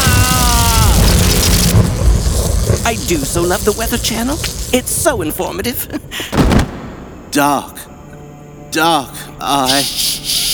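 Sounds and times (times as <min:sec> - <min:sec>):
lightning strike breaking through glass: 0:00.0 - 0:07.6
speech: 0:02.9 - 0:06.6, 0:07.4 - 0:07.9, 0:08.7 - 0:10.4.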